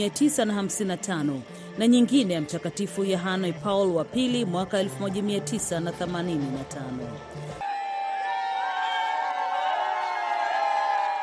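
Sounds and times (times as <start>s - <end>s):
speech: 0.0s - 7.7s
crowd in Kinshasa Congo cheering Pope Francis's visit: 7.6s - 11.2s.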